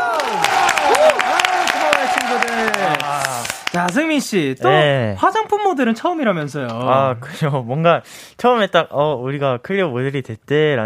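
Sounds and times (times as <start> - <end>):
excited whoops and cheering voices: 0.0 - 3.5
small group clapping: 0.0 - 4.4
speech: 3.8 - 10.8.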